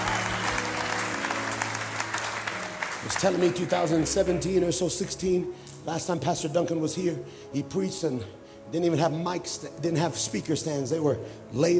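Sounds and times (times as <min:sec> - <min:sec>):
audience clapping: 0:00.0 - 0:04.4
speech: 0:03.0 - 0:11.7.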